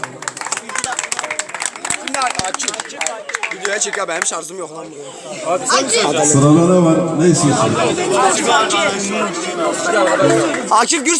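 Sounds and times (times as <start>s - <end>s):
crowd clapping: 0.0s - 4.6s, 9.5s - 11.1s
voices calling out and cheering: 0.0s - 11.1s
speech: 2.5s - 11.1s.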